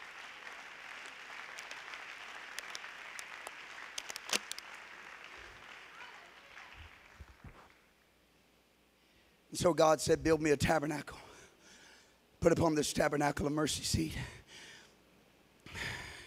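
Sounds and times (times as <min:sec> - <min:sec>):
audience clapping hands: 0:00.0 - 0:07.9
speech: 0:09.6 - 0:11.2, 0:12.4 - 0:14.4.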